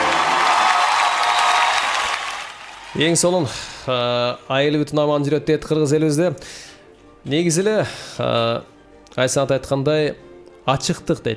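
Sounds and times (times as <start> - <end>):
crowd applause: 0.0 - 3.3
speech: 3.0 - 11.3.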